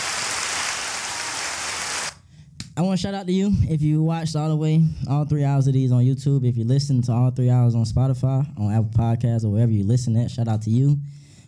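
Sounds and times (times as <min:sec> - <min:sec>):
applause: 0:00.0 - 0:02.2
speech: 0:02.8 - 0:11.2.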